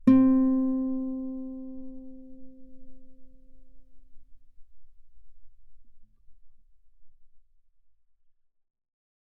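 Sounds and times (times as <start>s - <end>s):
guitar fortissimo on the A string playing C4 and E4: 0.0s - 2.8s.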